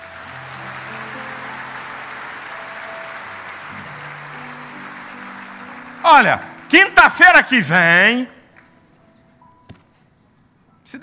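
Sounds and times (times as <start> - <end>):
audience applause: 0.0 - 8.2
speech: 6.1 - 8.4.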